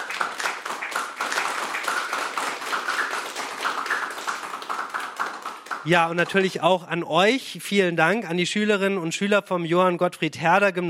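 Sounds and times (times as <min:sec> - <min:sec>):
applause: 0:00.0 - 0:06.6
speech: 0:05.8 - 0:10.8.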